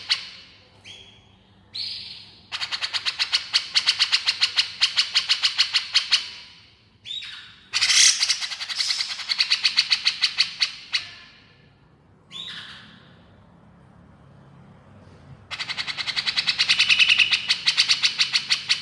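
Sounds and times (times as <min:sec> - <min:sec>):
Grey-cheeked bulbul harsh pulsed chatter: 0:01.8 - 0:06.4, 0:07.2 - 0:11.5, 0:15.5 - 0:18.8.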